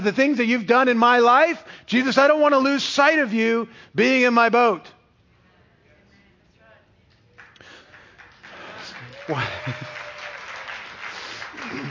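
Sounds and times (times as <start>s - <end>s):
speech: 0.0s - 5.0s, 9.3s - 9.9s
audience clapping: 7.1s - 11.8s.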